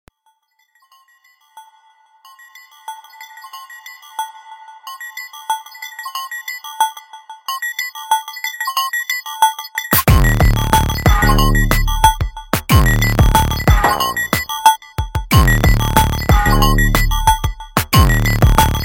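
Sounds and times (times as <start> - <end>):
bell beat: 10.2 - 18.8.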